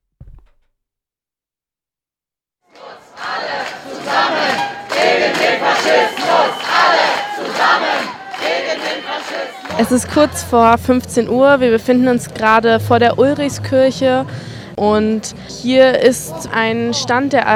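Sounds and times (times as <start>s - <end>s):
counter-protesters chanting against an AfD campaign rally near the Ulrichskirche: 2.7s - 9.7s
speech: 9.8s - 17.5s.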